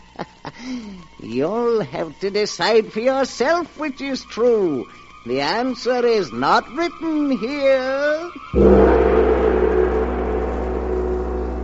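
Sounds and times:
speech: 0.2s - 9.0s
great gong struck: 8.6s - 11.6s.

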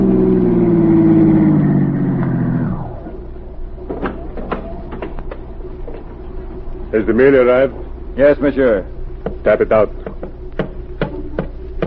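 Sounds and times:
car pulling up to the curb: 0.0s - 4.4s
speech: 7.0s - 10.0s.

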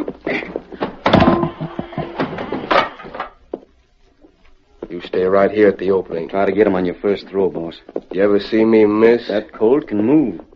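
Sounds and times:
horse corral bars lifted, wooden knocks and thuds as radio drama effect: 0.8s - 3.1s
speech: 5.2s - 10.5s.

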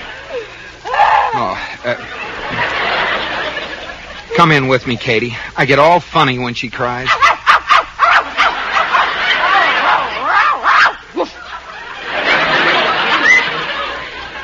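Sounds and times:
laughter: 0.0s - 5.4s, 6.9s - 14.4s
speech: 4.4s - 7.3s
dog barking and yipping: 7.1s - 11.4s.

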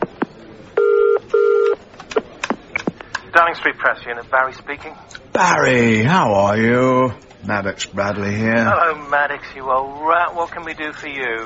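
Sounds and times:
telephone ringing: 0.8s - 1.8s
speech: 3.4s - 11.4s.

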